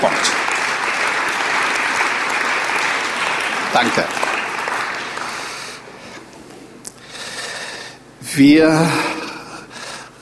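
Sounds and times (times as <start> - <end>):
church congregation clapping: 0.0 - 6.3
speech: 3.7 - 4.2, 8.4 - 9.1.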